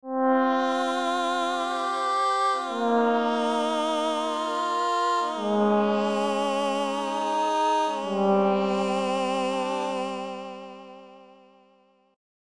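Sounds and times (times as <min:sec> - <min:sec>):
space opera music: 0:00.1 - 0:11.3.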